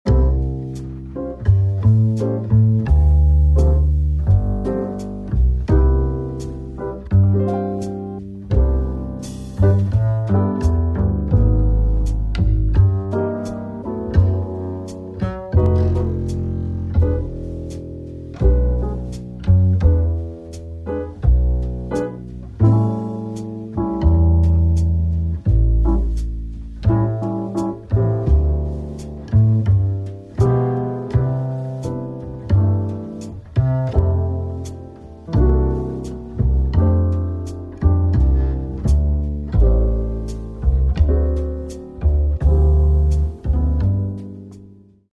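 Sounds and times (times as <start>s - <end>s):
morning background jazz music: 0.0s - 45.1s.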